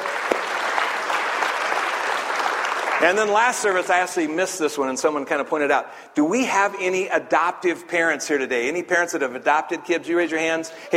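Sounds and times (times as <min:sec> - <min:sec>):
church congregation applause: 0:00.0 - 0:04.2
speech: 0:03.0 - 0:10.9.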